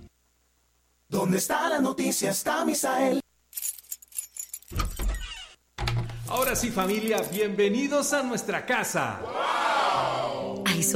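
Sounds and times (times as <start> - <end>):
speech: 1.3 - 3.2, 6.3 - 9.6, 10.8 - 10.9
keys jangling: 3.6 - 5.2, 6.3 - 7.5
front door opening with a thump and rattle: 4.5 - 7.3.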